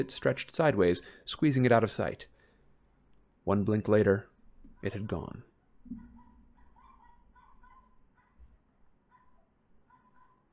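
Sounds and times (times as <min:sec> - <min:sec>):
speech: 0:00.0 - 0:02.3, 0:03.4 - 0:06.0
dog whining and yelping outside: 0:05.9 - 0:10.5.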